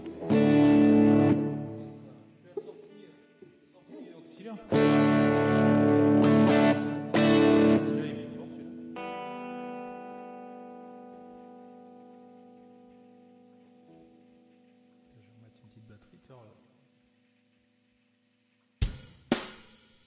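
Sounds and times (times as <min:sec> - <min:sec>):
effected instrument tones through Mustang original sound presets with heavy reverb: 0:00.0 - 0:02.1, 0:04.7 - 0:14.3.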